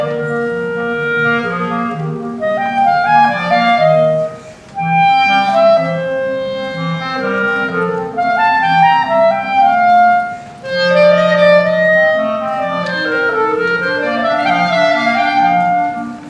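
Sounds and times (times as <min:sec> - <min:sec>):
two clarinets playing a duet: 0:00.0 - 0:16.2.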